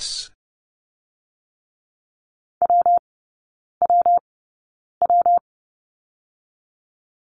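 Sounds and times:
morse code letter W tones at 30 wpm: 0:02.6 - 0:03.0, 0:03.8 - 0:04.2, 0:05.0 - 0:05.4.

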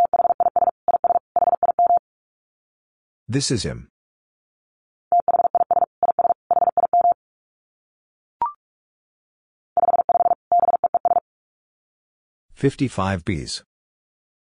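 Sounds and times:
Morse code tones at 45 words per minute: 0:00.0 - 0:02.0, 0:05.1 - 0:07.2, 0:09.8 - 0:11.2
speech: 0:03.3 - 0:04.0, 0:12.6 - 0:13.7.

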